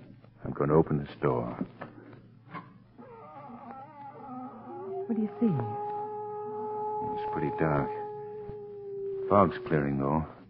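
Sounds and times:
speech: 0:00.5 - 0:01.8, 0:05.1 - 0:05.8, 0:07.1 - 0:08.0, 0:09.3 - 0:10.4
cat howling: 0:03.0 - 0:10.4.

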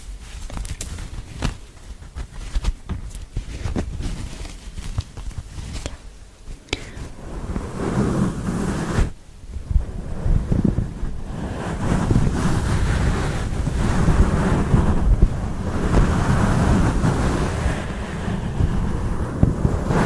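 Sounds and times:
intense scratching on a microphone: 0:00.0 - 0:20.0.

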